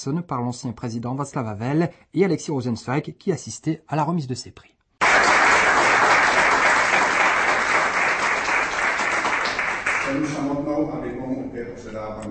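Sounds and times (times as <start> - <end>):
speech: 0.0 - 4.8, 10.1 - 12.3
applause for award winners: 5.0 - 10.4.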